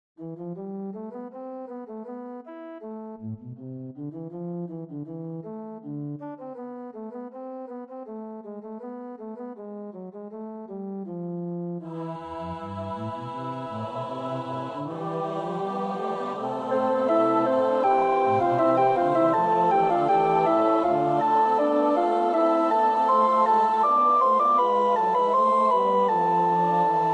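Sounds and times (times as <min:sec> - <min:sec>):
alto choir part practice singing: 0:11.8 - 0:27.1.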